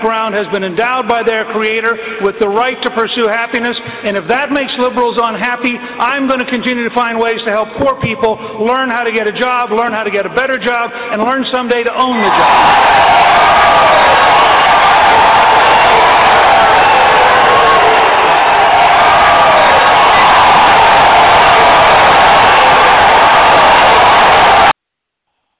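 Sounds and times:
speech: 0:00.0 - 0:14.4
crowd cheering: 0:12.0 - 0:24.8.

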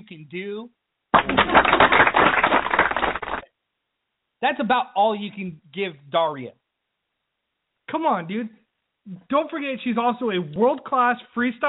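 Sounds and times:
speech: 0:00.1 - 0:02.8, 0:04.4 - 0:06.6, 0:07.9 - 0:11.6
applause sound effect: 0:01.1 - 0:03.5.

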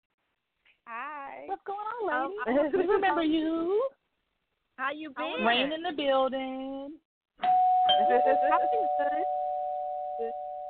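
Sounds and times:
speech: 0:00.9 - 0:04.0, 0:04.8 - 0:09.4, 0:10.2 - 0:10.4
doorbell chime: 0:07.4 - 0:10.6.

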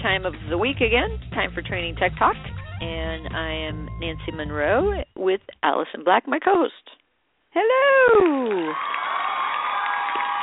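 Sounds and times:
speech: 0:00.0 - 0:07.0, 0:07.6 - 0:09.0
live studio audience at a game show cheering and applauding: 0:08.1 - 0:10.4.

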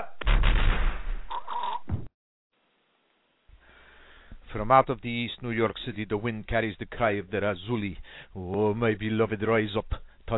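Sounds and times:
gunfire volley from a mock firing squad: 0:00.0 - 0:02.1
speech: 0:04.5 - 0:10.3.

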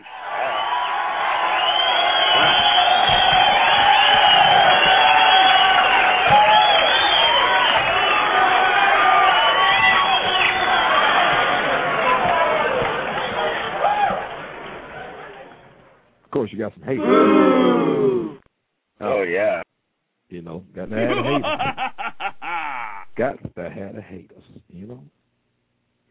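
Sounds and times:
crowd cheering and whooping: 0:00.0 - 0:15.5, 0:17.0 - 0:18.4
audience applause: 0:00.0 - 0:15.6
laughter: 0:20.9 - 0:23.3.

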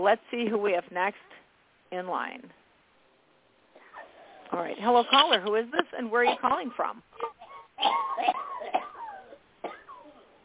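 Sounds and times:
speech: 0:00.0 - 0:02.6, 0:04.5 - 0:08.8
raspy coughs: 0:03.7 - 0:04.2, 0:06.2 - 0:10.2.

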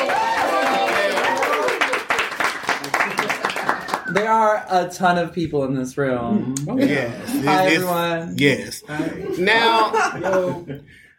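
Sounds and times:
whoops and cheering voices: 0:00.0 - 0:02.0
crowd applauding: 0:00.0 - 0:04.6
speech: 0:04.2 - 0:11.0
laughter: 0:08.9 - 0:11.0.

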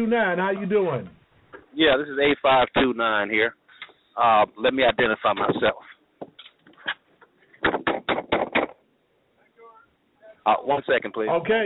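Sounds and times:
speech: 0:00.0 - 0:01.2, 0:01.8 - 0:03.6, 0:04.2 - 0:06.3, 0:10.4 - 0:11.6
someone knocking at the door: 0:07.6 - 0:08.8.

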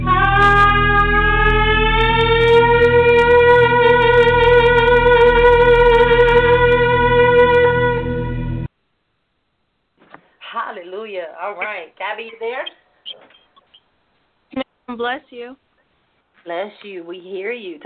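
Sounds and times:
trumpet blown in one long brassy note: 0:00.0 - 0:08.7
speech: 0:15.0 - 0:15.7, 0:16.4 - 0:17.8.

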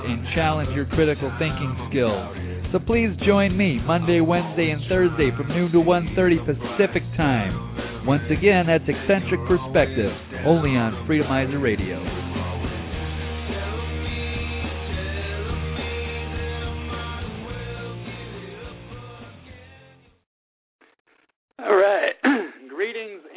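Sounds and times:
music: 0:00.0 - 0:20.2
speech: 0:00.1 - 0:12.3
person coughing: 0:22.0 - 0:22.7
throat-clearing: 0:22.0 - 0:22.7.

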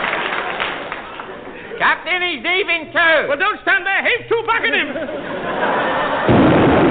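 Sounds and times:
laughter: 0:00.2 - 0:01.9, 0:04.5 - 0:06.4
speech: 0:02.2 - 0:06.5
cannon firing: 0:06.3 - 0:06.8.

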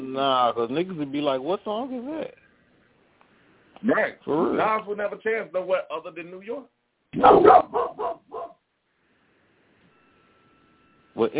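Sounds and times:
speech: 0:00.2 - 0:02.4, 0:03.8 - 0:08.1, 0:11.2 - 0:11.3
dog barking loudly: 0:07.2 - 0:08.6.

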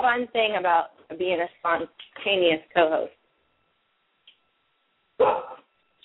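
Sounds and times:
speech: 0:00.0 - 0:03.2, 0:05.2 - 0:05.6
dogs barking: 0:05.2 - 0:05.7.

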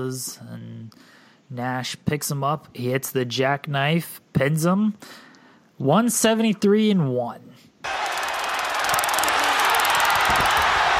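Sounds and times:
speech: 0:00.0 - 0:07.6
crowd roaring and cheering: 0:07.8 - 0:10.9
stun gun crackling: 0:07.9 - 0:10.9.

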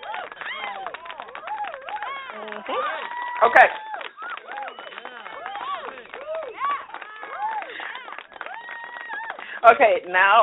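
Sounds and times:
applause sound effect: 0:00.0 - 0:09.6
speech: 0:02.6 - 0:03.9, 0:09.6 - 0:10.4.

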